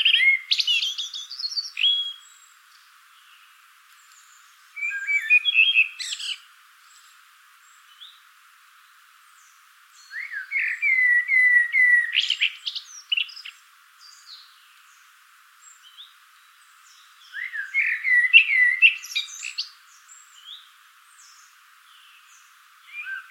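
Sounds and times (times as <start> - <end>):
common blackbird singing: 0.0 - 2.5, 4.2 - 7.1, 9.4 - 15.0, 15.7 - 23.2.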